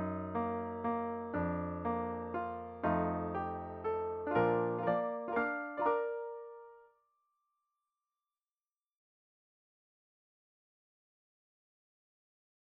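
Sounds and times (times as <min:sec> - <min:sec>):
piano: 0:00.0 - 0:07.0.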